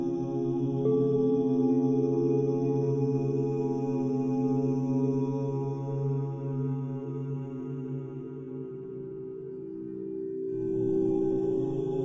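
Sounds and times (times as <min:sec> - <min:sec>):
person chanting OM: 0:00.0 - 0:12.0
singing bowls: 0:00.0 - 0:12.0.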